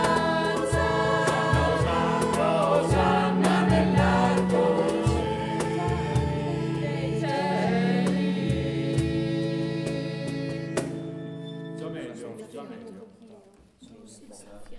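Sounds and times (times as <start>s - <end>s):
percussion: 0.0s - 11.2s
choral piece: 0.0s - 12.6s.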